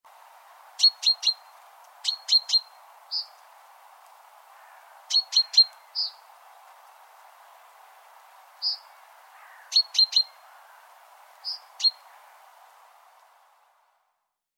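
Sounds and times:
background hiss: 0:00.1 - 0:14.3
great tit calling: 0:00.8 - 0:03.4, 0:04.6 - 0:06.3, 0:08.6 - 0:12.3.

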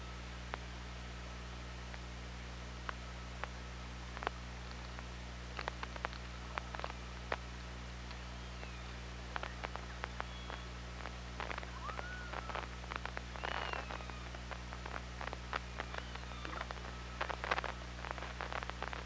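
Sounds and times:
low hum: 0:00.0 - 0:19.0
killer whale upswept tonal call: 0:11.7 - 0:12.7, 0:13.4 - 0:14.4, 0:15.8 - 0:16.8.

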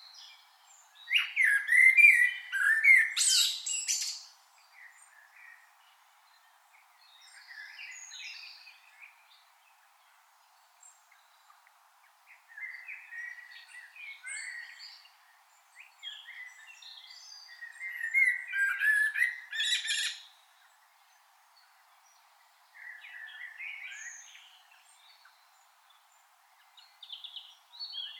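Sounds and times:
Common blackbird singing mellow warble with squeaky ending: 0:00.0 - 0:28.1.

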